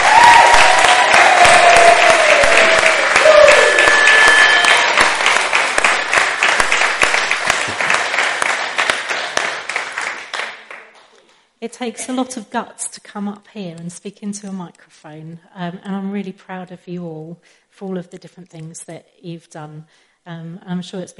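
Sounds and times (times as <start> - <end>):
audience applause: 0.0 - 11.0
speech: 11.7 - 21.1.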